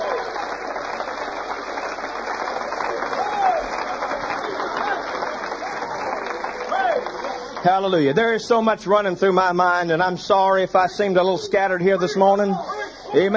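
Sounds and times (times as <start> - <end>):
audience hand clapping: 0.0 - 8.4
speech: 7.6 - 13.3.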